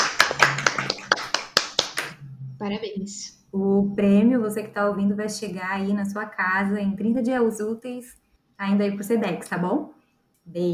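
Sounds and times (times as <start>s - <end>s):
hand claps celebrating a prize being awarded: 0.0s - 2.2s
speech: 2.7s - 10.7s.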